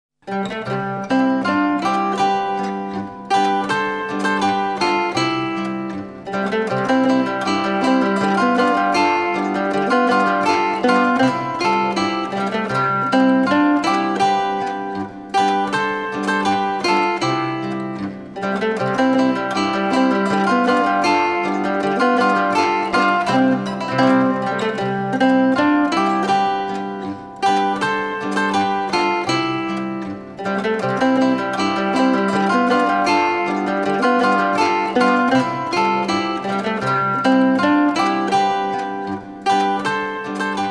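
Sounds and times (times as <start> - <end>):
Bavarian zither music: 0.3 - 40.6.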